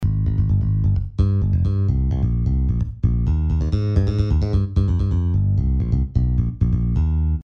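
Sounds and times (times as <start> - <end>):
bass: 0.0 - 7.4.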